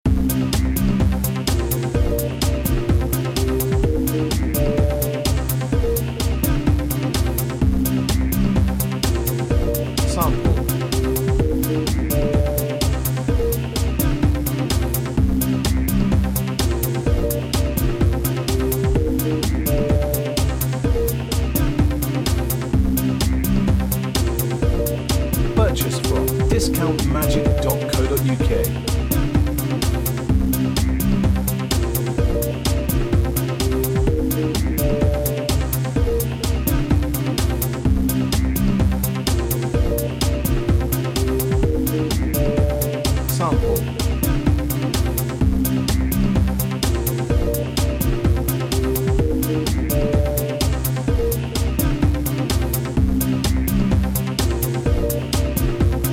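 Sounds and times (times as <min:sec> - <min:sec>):
electro backing music: 0:00.1 - 0:56.1.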